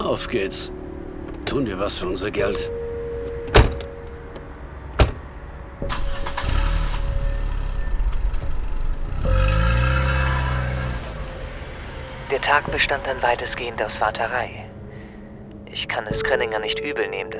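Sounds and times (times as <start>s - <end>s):
speech: 0.1s - 0.8s, 1.5s - 2.8s, 12.4s - 14.7s, 15.7s - 17.3s
car engine starting, idling and revving: 0.8s - 13.2s
car door slamming: 1.2s - 5.5s.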